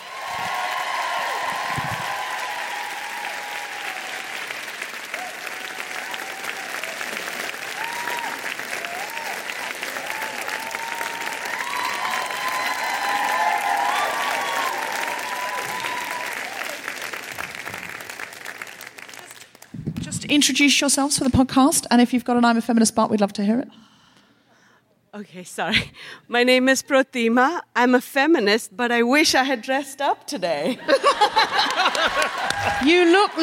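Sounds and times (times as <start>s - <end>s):
faint voices and cheers: 0.0s - 17.0s, 32.4s - 33.0s
audience applause: 0.0s - 19.8s, 31.2s - 33.4s
speech: 20.3s - 23.9s, 25.2s - 33.4s
laughter: 30.7s - 33.4s.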